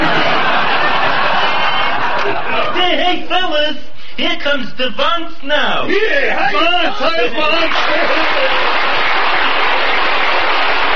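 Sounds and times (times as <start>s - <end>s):
canned applause: 0.0s - 2.5s, 7.4s - 10.9s
laughter: 0.0s - 3.3s, 6.5s - 10.9s
speech: 3.1s - 8.9s.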